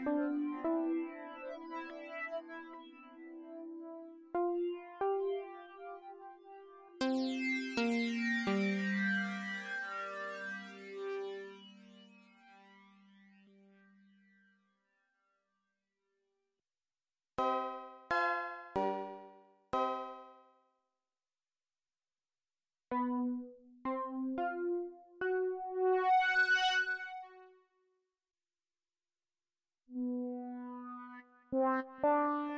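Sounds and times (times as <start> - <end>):
Animoog synthesizer on iPad: 0.0 - 14.9, 17.4 - 20.4, 22.9 - 27.6, 29.9 - 32.5.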